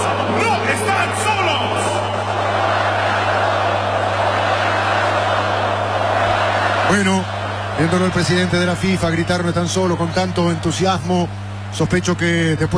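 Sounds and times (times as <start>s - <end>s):
stadium crowd chanting in the Azteca: 0.0s - 8.3s
speech: 6.9s - 12.7s.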